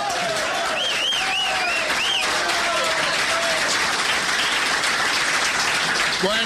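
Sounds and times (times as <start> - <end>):
audience applause: 0.0 - 6.4
whistles: 0.7 - 2.3.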